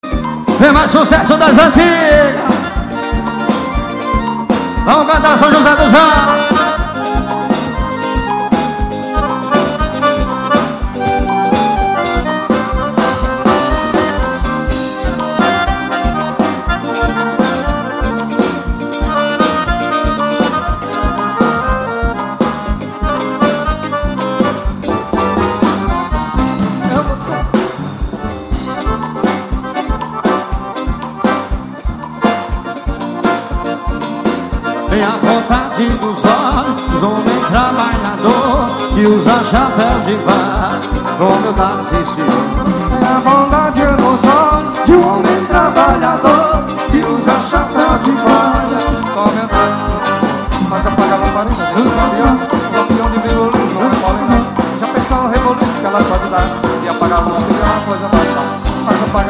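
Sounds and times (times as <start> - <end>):
forro bate esteira music: 0.0 - 59.2.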